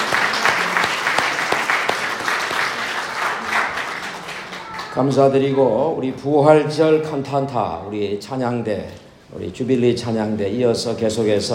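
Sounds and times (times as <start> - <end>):
audience clapping: 0.0 - 5.2
speech: 5.0 - 11.5.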